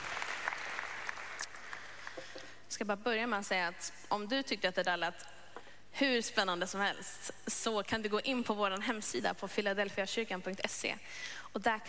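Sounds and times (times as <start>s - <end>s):
applause: 0.0s - 2.4s
speech: 2.7s - 5.3s, 6.0s - 11.8s.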